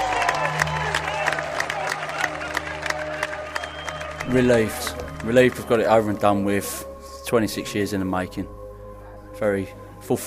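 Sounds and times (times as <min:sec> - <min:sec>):
crowd applauding and cheering: 0:00.0 - 0:06.6
speech: 0:04.3 - 0:08.6, 0:09.4 - 0:10.2.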